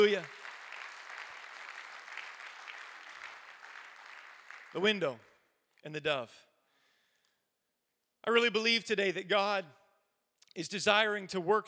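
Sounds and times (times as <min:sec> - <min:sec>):
speech: 0:00.0 - 0:00.4, 0:04.7 - 0:06.5, 0:08.2 - 0:09.8, 0:10.6 - 0:11.6
people clapping: 0:00.0 - 0:05.4.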